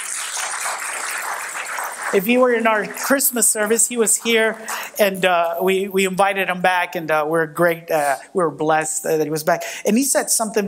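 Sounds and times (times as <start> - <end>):
audience applause: 0.0 - 4.9
speech: 2.1 - 10.6.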